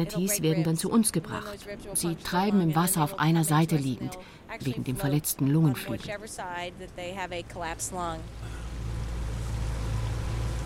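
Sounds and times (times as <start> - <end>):
speech: 0.0 - 8.7
motorboat engine droning in Crystal River, Florida: 7.6 - 10.6.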